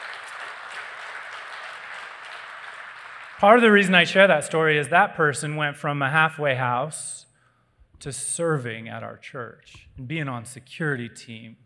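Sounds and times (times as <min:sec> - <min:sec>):
audience applause: 0:00.0 - 0:03.9
speech: 0:03.4 - 0:07.3, 0:08.0 - 0:11.6.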